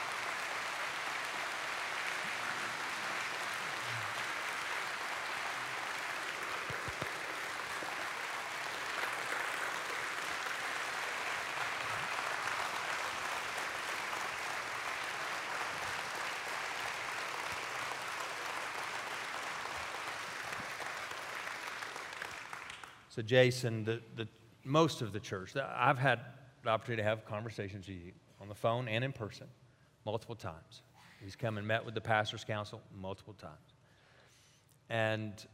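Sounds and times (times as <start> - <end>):
audience applauding: 0.0 - 23.1
speech: 23.2 - 33.7, 34.9 - 35.5.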